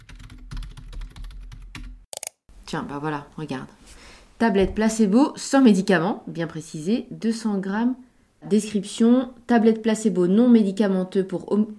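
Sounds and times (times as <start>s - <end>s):
typing on a computer keyboard while searching online for placebo pills: 0.0s - 2.4s
speech: 2.7s - 11.7s.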